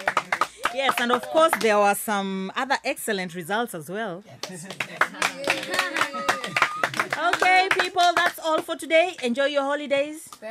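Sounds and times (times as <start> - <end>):
class clapping for a top student: 0.0 - 1.8, 4.4 - 9.4
speech: 0.8 - 6.3, 7.2 - 10.4.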